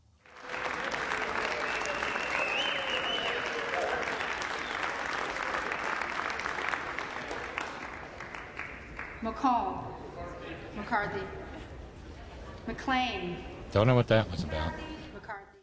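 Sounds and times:
applause in a chamber: 0.0s - 9.2s
speech: 9.4s - 10.0s, 10.8s - 11.4s, 12.7s - 14.9s.

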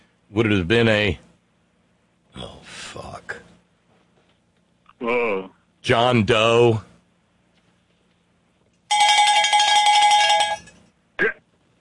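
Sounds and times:
speech: 0.3s - 1.3s, 5.0s - 6.9s
cowbell ringing: 8.9s - 10.8s.

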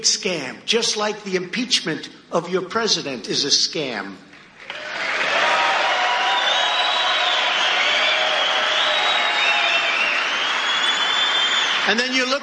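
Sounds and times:
speech: 0.0s - 4.8s, 11.9s - 12.4s
scattered clapping from rally crowd: 4.3s - 12.4s
rally crowd cheering and whooping: 4.6s - 12.4s.

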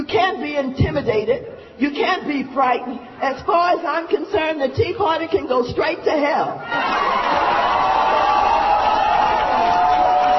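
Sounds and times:
speech: 0.1s - 8.0s
crowd cheering: 6.6s - 10.3s.

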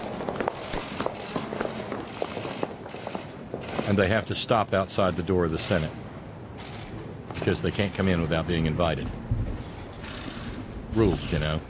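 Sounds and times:
many footsteps echoing in a large hall: 0.0s - 3.9s
speech: 3.9s - 6.0s, 7.4s - 9.2s, 10.9s - 11.6s.

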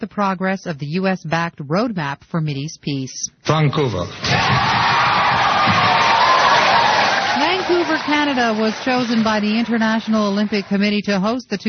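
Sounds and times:
speech: 0.0s - 4.9s, 8.0s - 11.6s
crowd in Vancouver cheering the 2010 Winter Olympics announcement: 4.2s - 11.4s.

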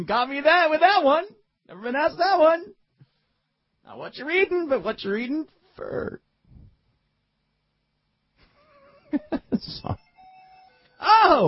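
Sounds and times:
speech: 0.0s - 2.8s, 3.9s - 6.2s, 9.1s - 10.0s, 11.0s - 11.4s
phone ringing: 9.9s - 11.4s.

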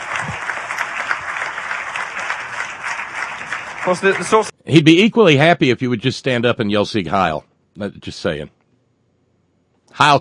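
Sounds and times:
audience applause: 0.0s - 4.5s
speech: 3.9s - 8.6s, 10.0s - 10.1s.

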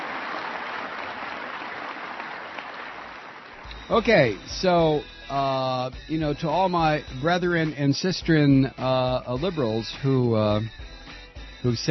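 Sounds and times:
Marines applauding: 0.0s - 3.7s
speech: 3.9s - 10.9s, 11.6s - 11.9s.

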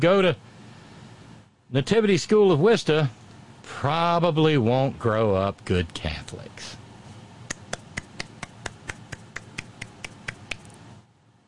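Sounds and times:
speech: 0.0s - 0.5s, 1.7s - 6.8s
slow golf clap: 7.5s - 10.8s.

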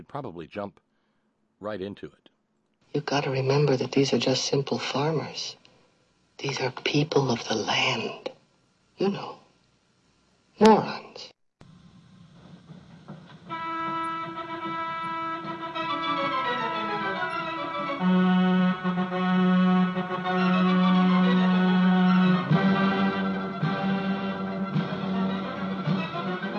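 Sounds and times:
speech: 0.0s - 0.9s, 1.6s - 2.3s, 2.9s - 5.6s, 6.4s - 8.3s, 9.0s - 9.4s, 10.6s - 11.3s
horn calliope playing: 13.4s - 26.5s.

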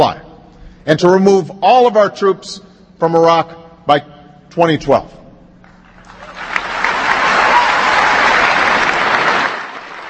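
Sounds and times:
speech: 0.0s - 0.2s, 0.8s - 5.2s
large crowd applause: 5.8s - 10.0s.

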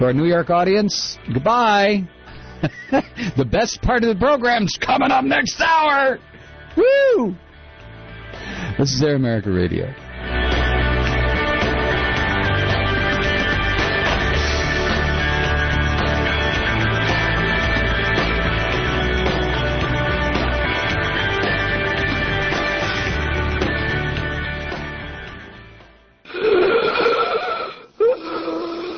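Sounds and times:
speech: 0.0s - 7.4s, 8.8s - 10.0s
music: 0.0s - 28.9s
strained wheezing breaths during an asthma attack: 8.2s - 8.8s, 26.3s - 28.9s.

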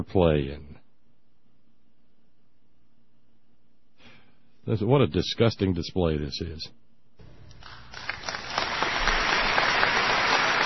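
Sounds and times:
speech: 0.0s - 0.7s, 4.7s - 6.8s
audience applause: 7.5s - 10.6s.

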